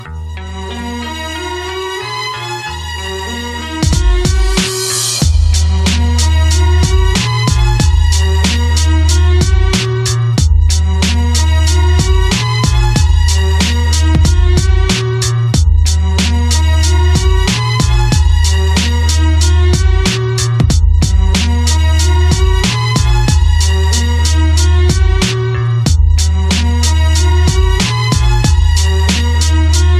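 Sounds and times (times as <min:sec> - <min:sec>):
boom bap beat: 0:03.6 - 0:29.9.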